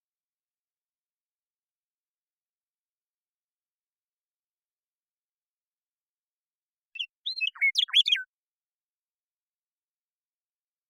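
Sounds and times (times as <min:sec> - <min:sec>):
Western meadowlark singing: 0:07.0 - 0:08.3.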